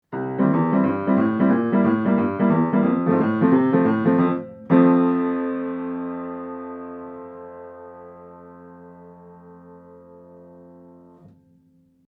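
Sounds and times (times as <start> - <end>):
piano recorded with omni microphone: 0.0 - 12.0.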